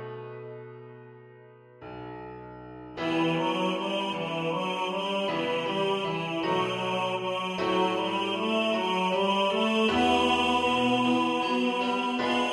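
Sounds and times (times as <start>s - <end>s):
tenor singing: 3.0s - 12.5s.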